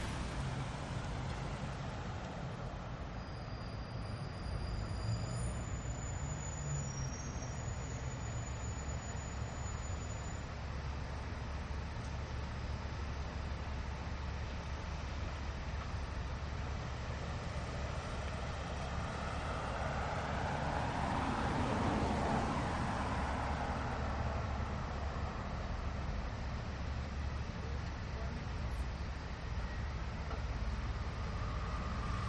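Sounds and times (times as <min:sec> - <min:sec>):
traffic cars passing by in Aspen Colorado USA: 0:00.0 - 0:09.8, 0:16.2 - 0:32.2
bus passing by in Aspen Colorado USA: 0:00.0 - 0:32.2.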